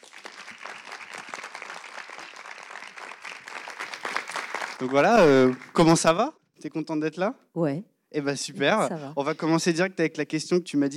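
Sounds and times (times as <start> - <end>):
audience applause: 0.0 - 6.2
speech: 4.8 - 10.9.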